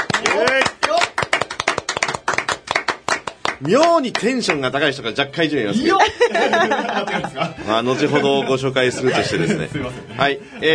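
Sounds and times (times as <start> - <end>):
a few people applauding in a studio in Kitakyushu: 0.0 - 4.9
speech: 3.6 - 10.7
laughter: 5.7 - 10.7.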